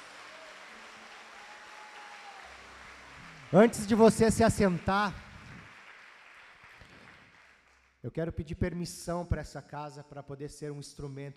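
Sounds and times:
audience applause: 0.0 - 7.8
speech: 3.5 - 5.2, 8.0 - 11.3.

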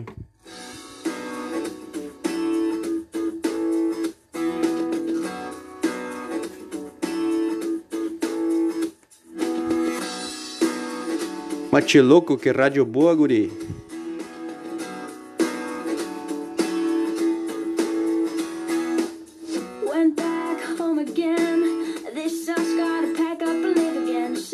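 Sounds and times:
post-punk pop rock song playing: 0.0 - 8.8, 9.4 - 12.3, 13.4 - 24.5
speech: 11.8 - 13.7.

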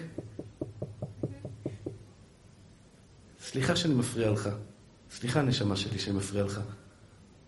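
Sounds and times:
knocking on a door: 0.0 - 2.1
speech: 3.5 - 6.8.

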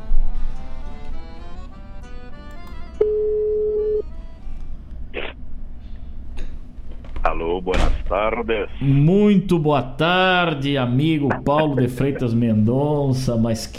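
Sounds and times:
telephone line tone while a radio host dials a guest: 3.0 - 4.1
speech: 7.6 - 13.7.

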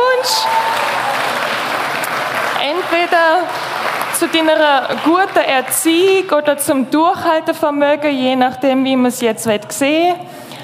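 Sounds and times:
applause sound effect: 0.0 - 6.7
speech: 4.2 - 10.6.

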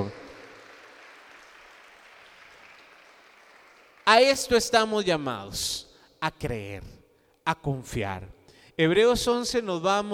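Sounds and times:
audience clapping: 0.0 - 4.7
speech: 4.1 - 10.1.

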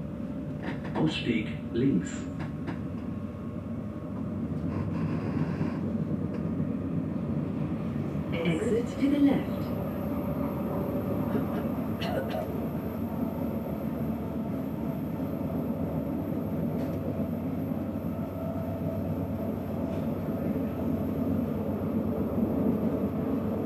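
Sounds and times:
S-Bahn train rumbling on Berlin's Ringbahn: 0.0 - 23.6
brief voices: 8.3 - 9.8.

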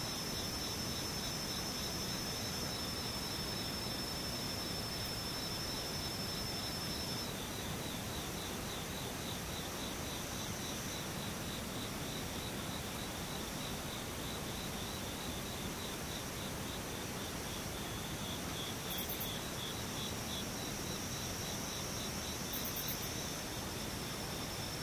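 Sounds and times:
insects chorus: 0.0 - 24.8.

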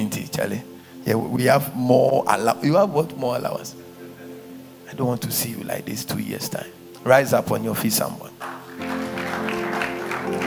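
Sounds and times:
speech: 0.4 - 3.9, 4.9 - 8.9
audience clapping: 8.4 - 10.4.

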